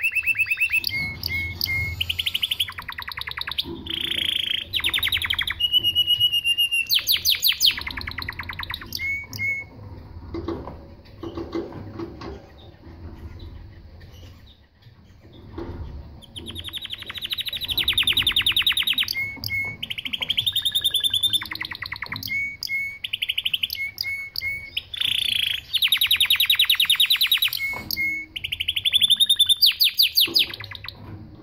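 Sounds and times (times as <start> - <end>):
canary singing: 0.0 - 9.8, 16.2 - 31.0.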